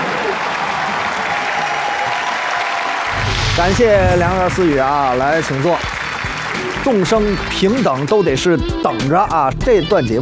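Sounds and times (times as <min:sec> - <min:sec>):
audience applause: 0:00.0 - 0:07.9
speech: 0:03.6 - 0:05.9, 0:06.8 - 0:10.2.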